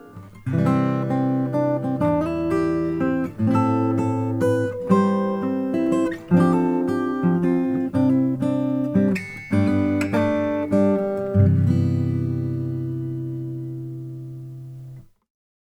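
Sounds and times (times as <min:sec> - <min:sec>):
Greenfield Indian rosewood acoustic guitar: 0:00.0 - 0:15.2.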